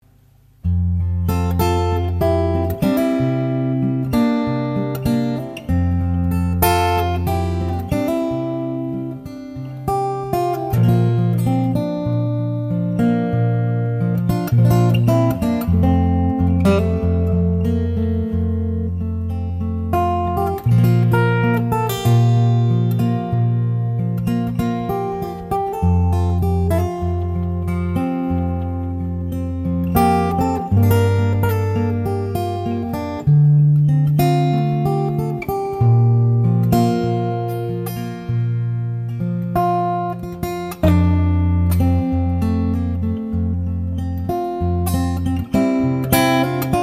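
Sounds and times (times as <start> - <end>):
guitarist playing: 0.2 - 46.8.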